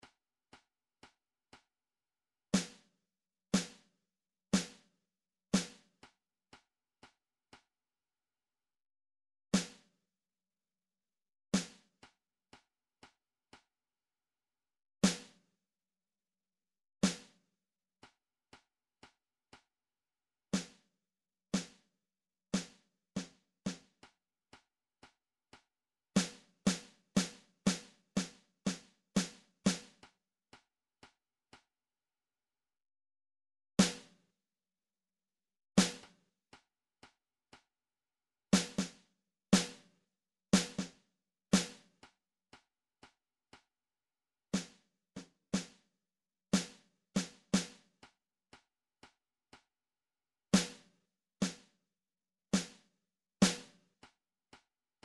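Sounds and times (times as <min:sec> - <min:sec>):
snare drum: 0:03.6 - 0:03.9, 0:04.6 - 0:04.9, 0:05.6 - 0:05.9, 0:09.6 - 0:09.9, 0:11.6 - 0:11.8, 0:15.0 - 0:15.4, 0:17.0 - 0:17.4, 0:20.6 - 0:20.8, 0:21.6 - 0:21.8, 0:22.6 - 0:23.9, 0:26.2 - 0:30.0, 0:33.8 - 0:34.2, 0:35.8 - 0:36.2, 0:38.6 - 0:39.0, 0:39.6 - 0:39.9, 0:40.6 - 0:41.0, 0:41.6 - 0:41.9, 0:44.6 - 0:44.8, 0:45.6 - 0:45.8, 0:46.6 - 0:47.8, 0:50.6 - 0:51.7, 0:52.6 - 0:52.8, 0:53.4 - 0:53.8.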